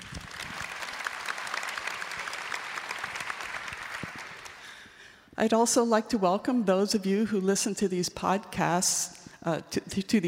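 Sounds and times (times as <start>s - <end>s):
audience applause welcoming a film producer and director: 0.0s - 4.8s
speech: 5.4s - 10.2s.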